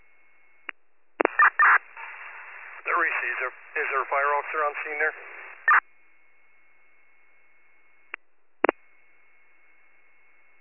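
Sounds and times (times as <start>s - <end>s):
radio dispatch cancellation tones: 1.2s - 5.8s
speech: 3.5s - 5.9s.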